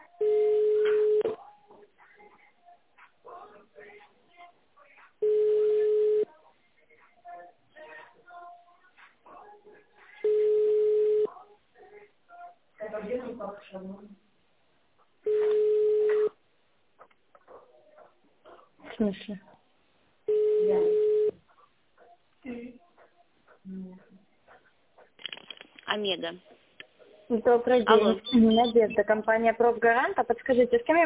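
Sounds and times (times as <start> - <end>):
telephone ringback tone during forwarded call: 0.2 - 1.4, 5.2 - 6.3, 10.2 - 11.3, 15.3 - 16.3, 20.3 - 21.3
speech: 19.0 - 19.5, 26.1 - 26.5, 27.3 - 31.0.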